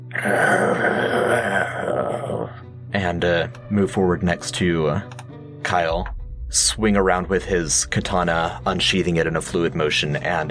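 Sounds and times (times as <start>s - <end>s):
person imitating a tiger's guttural growl: 0.0s - 2.6s
speech: 0.2s - 1.0s, 3.1s - 10.4s.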